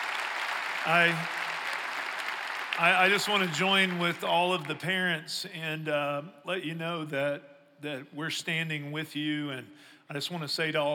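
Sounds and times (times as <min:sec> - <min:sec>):
audience round of applause: 0:00.0 - 0:04.7
speech: 0:00.8 - 0:01.4, 0:02.8 - 0:10.9.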